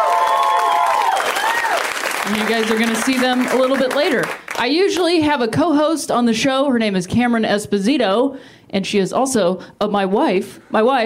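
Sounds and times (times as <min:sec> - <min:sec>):
audience applause: 0:00.0 - 0:04.6
speech: 0:02.3 - 0:11.0.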